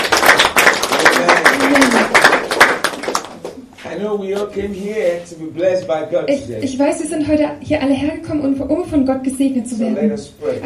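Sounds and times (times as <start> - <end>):
congregation clapping for Jesus at a church service: 0.0 - 3.6
speech: 4.2 - 10.6.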